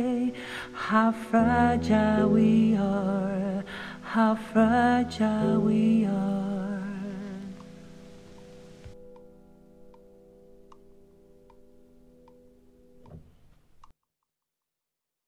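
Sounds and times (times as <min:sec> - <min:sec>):
alto singing: 0:00.0 - 0:09.0
piano: 0:00.0 - 0:13.8.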